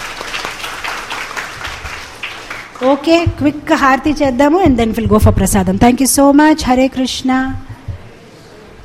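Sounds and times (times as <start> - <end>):
audience applause at a Hare Krishna gathering: 0.0 - 2.8
speech: 2.8 - 7.7.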